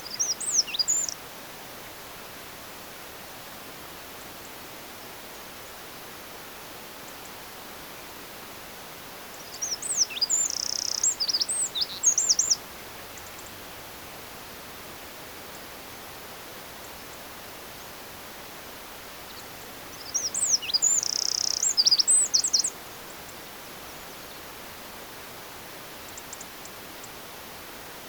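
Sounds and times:
Eurasian wren song: 0.0 - 1.2, 9.3 - 14.4, 19.2 - 24.5
faint hiss: 0.0 - 28.0.

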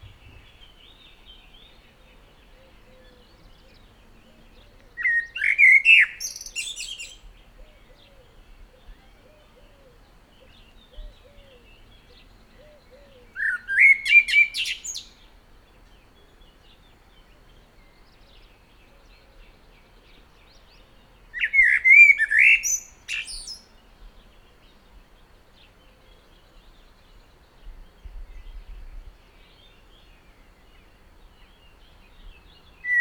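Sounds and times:
faint low rumbles: 0.0 - 0.9
common blackbird warbled song: 0.0 - 32.9.

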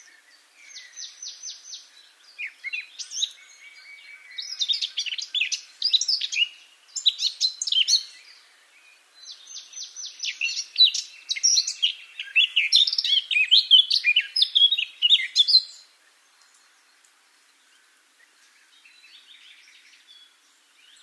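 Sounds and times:
Eurasian blackcap singing: 0.0 - 8.5, 9.2 - 16.7.

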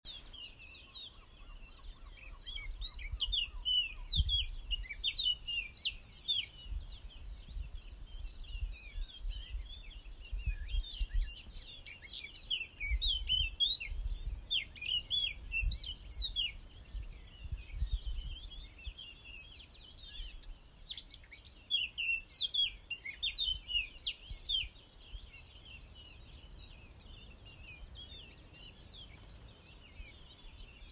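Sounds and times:
Eurasian blackcap singing: 0.1 - 30.9.

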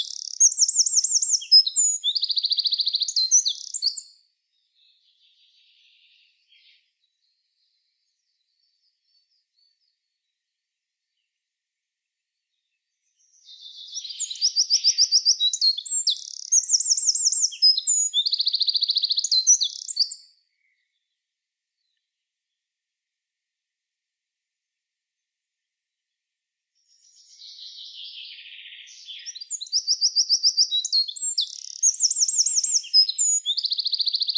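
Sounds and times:
Eurasian wren singing high ringing notes and rattling trills: 0.0 - 4.0, 13.3 - 20.2, 27.0 - 34.3.

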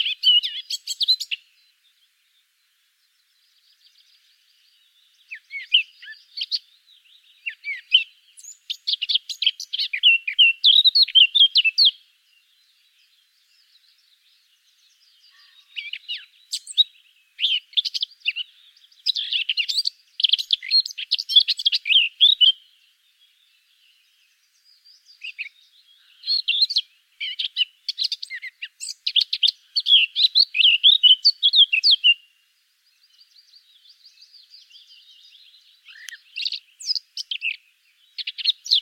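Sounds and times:
Eurasian blackcap warbling song: 0.0 - 2.2, 3.0 - 38.7.

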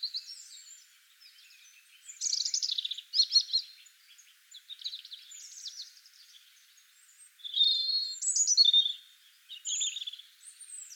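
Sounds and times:
European robin Erithacus rubecula singing: 0.0 - 10.9.

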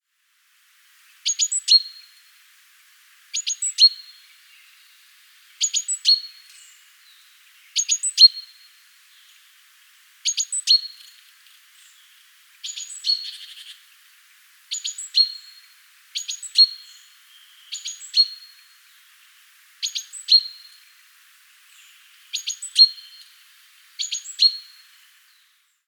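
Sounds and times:
great tit calls: 1.1 - 2.1, 5.5 - 9.4, 10.2 - 19.2, 19.8 - 21.0, 21.7 - 25.5.

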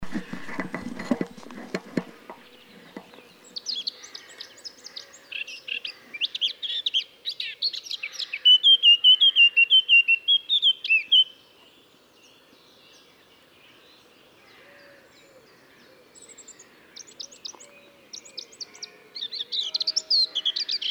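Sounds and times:
rustling: 0.0 - 3.6
Eurasian blackcap song: 2.0 - 20.8.

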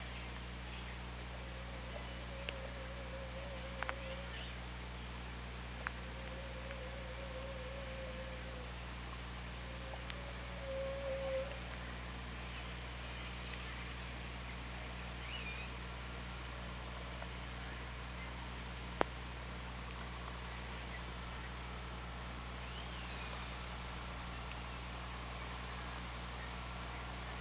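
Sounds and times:
constant low underwater hum: 0.0 - 27.3
Killer whale call: 1.3 - 4.6, 5.8 - 8.8, 9.5 - 11.6.

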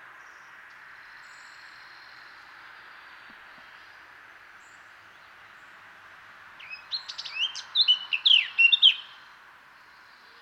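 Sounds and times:
soft background hiss: 0.0 - 10.4
Eurasian blackcap song: 6.6 - 9.2.

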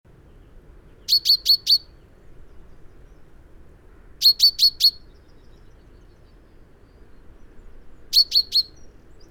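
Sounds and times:
common chaffinch Fringilla coelebs calling in sharp high notes: 1.1 - 1.9, 4.2 - 5.0, 8.1 - 8.8.

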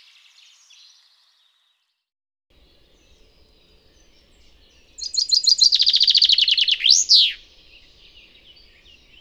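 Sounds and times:
Fringilla coelebs calling: 2.6 - 9.1.

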